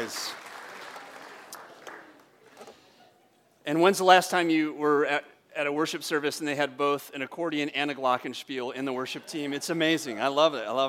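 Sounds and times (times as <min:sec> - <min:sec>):
congregation applauding the worship team at a worship service: 0:00.0 - 0:02.6
speech: 0:00.1 - 0:00.4, 0:03.7 - 0:10.8.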